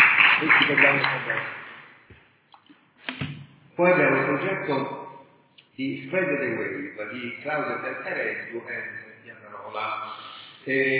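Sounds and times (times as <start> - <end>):
audience applause: 0.0 - 1.8
faint scattered claps or clicks: 0.0 - 3.4
speech: 0.4 - 1.6, 3.8 - 5.0, 5.8 - 9.0, 9.7 - 10.9.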